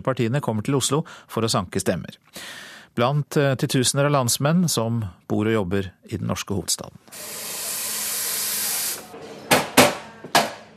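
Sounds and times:
speech: 0.0s - 7.5s
coffee machine steaming and hissing: 7.1s - 9.2s.

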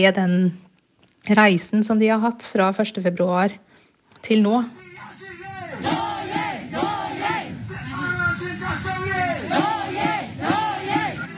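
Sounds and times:
speech: 0.0s - 4.8s, 5.8s - 6.1s
protest crowd chanting a battle cry: 4.8s - 11.3s.

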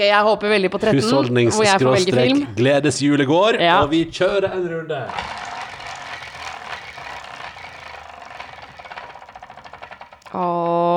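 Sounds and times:
speech: 0.0s - 5.4s
prize wheel spinning: 5.1s - 10.6s.

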